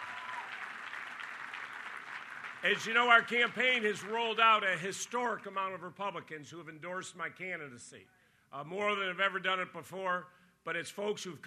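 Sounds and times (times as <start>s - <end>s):
audience applause at a political campaign event: 0.0s - 4.2s
speech: 2.6s - 11.4s.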